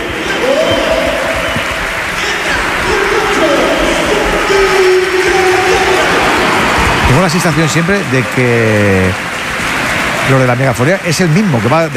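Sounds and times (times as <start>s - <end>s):
crowd chanting: 0.0s - 7.6s
football stadium crowd cheering and applauding: 0.0s - 11.9s
speech: 7.3s - 9.3s, 10.3s - 11.9s.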